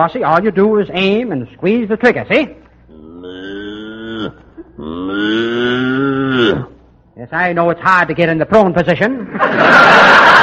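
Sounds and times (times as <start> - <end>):
speech: 0.0 - 2.6, 4.2 - 10.4
cow mooing: 2.9 - 6.8
laughter: 9.3 - 10.4.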